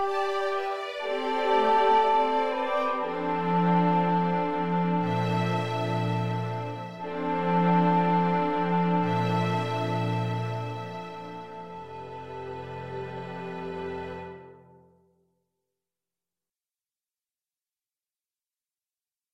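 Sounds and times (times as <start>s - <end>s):
English horn playing a pastoral: 0.0s - 12.8s
strings playing a pastoral: 0.0s - 14.9s.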